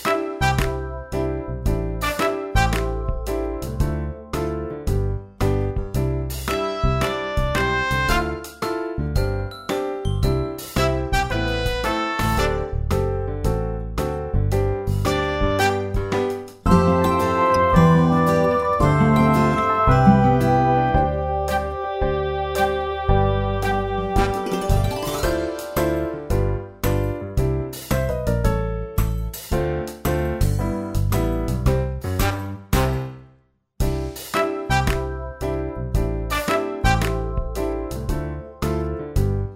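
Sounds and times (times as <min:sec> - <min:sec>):
instrumental music: 0:00.0 - 0:39.5.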